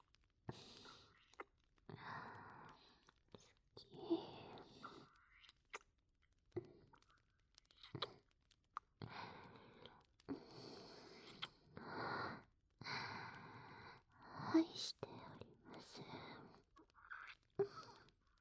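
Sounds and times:
breathy ASMR whispering: 0:00.5 - 0:05.5, 0:09.0 - 0:18.4.

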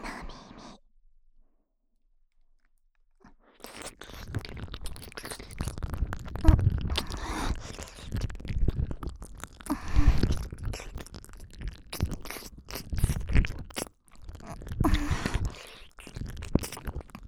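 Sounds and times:
ear licking in left ear: 0:03.6 - 0:17.2.

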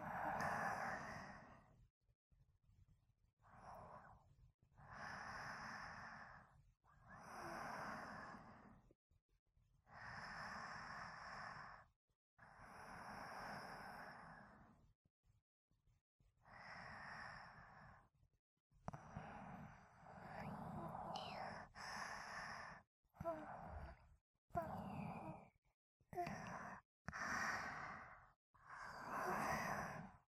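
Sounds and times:
sleeping breathing: 0:00.0 - 0:01.7, 0:04.8 - 0:08.9, 0:09.9 - 0:11.9, 0:12.5 - 0:14.8, 0:16.4 - 0:18.1, 0:18.9 - 0:30.2.

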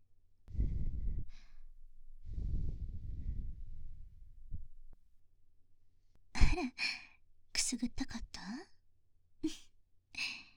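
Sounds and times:
soft breath blowing away dust: 0:00.5 - 0:04.2
speech: 0:06.6 - 0:07.0, 0:07.7 - 0:08.7, 0:09.4 - 0:09.6.

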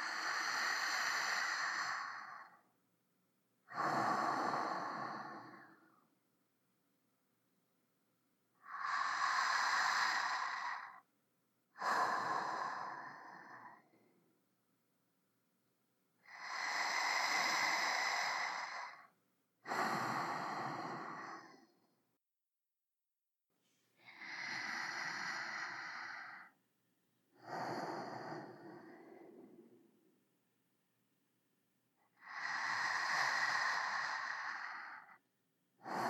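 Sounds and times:
sleeping breath: 0:00.0 - 0:02.7, 0:03.7 - 0:06.1, 0:08.6 - 0:11.1, 0:11.7 - 0:14.2, 0:16.2 - 0:22.0, 0:24.0 - 0:26.6, 0:27.4 - 0:30.2, 0:32.0 - 0:35.2, 0:35.8 - 0:36.0.

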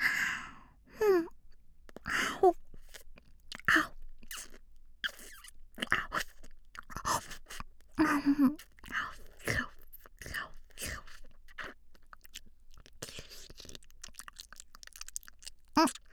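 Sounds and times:
breathy sighs: 0:00.0 - 0:01.3
wet ear-licking mouth sounds in ASMR: 0:01.9 - 0:16.1.

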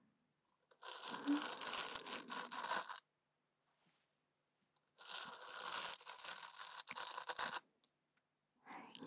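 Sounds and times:
soft brush brushing ears ASMR before sleep: 0:00.8 - 0:03.0, 0:05.0 - 0:07.6.

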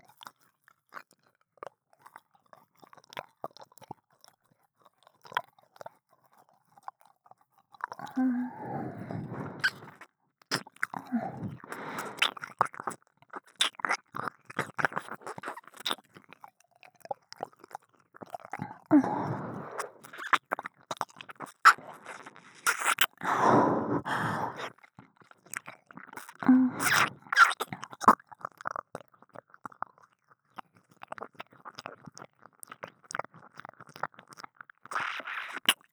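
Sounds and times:
ASMR ear licking in the right ear: 0:07.9 - 0:16.3, 0:17.1 - 0:35.9.

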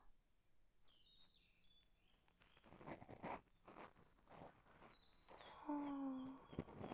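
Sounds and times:
ear cleaning sounds for sleep: 0:02.3 - 0:06.9.

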